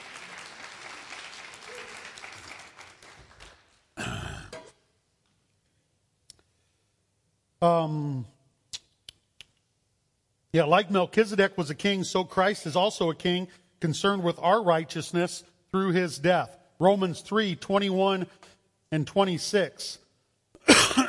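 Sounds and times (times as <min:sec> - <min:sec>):
audience applause: 0:00.0 - 0:03.8
speech: 0:07.6 - 0:08.3, 0:10.5 - 0:20.0.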